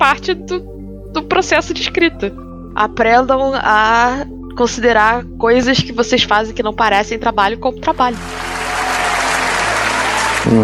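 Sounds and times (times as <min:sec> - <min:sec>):
speech: 0:00.0 - 0:08.5
crowd applause: 0:08.2 - 0:10.6.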